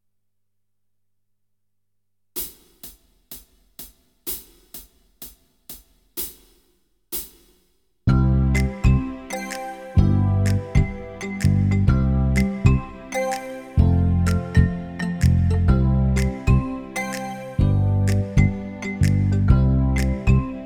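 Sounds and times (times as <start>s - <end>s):
keyboard backing track: 8.1s - 20.6s.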